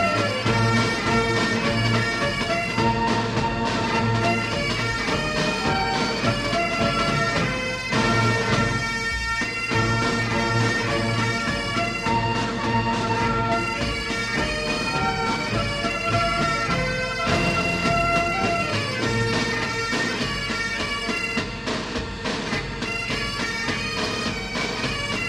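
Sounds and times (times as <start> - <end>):
bagpipes playing a Scottish hymn: 0.0 - 25.2.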